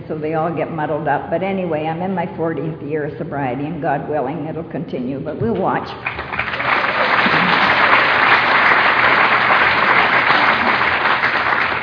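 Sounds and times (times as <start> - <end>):
speech: 0.1 - 6.3
audience applause: 6.0 - 11.8.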